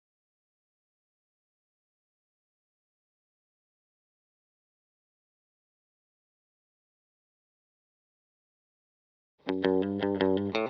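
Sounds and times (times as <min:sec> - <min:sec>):
electric guitar lead fill: 0:09.5 - 0:10.6.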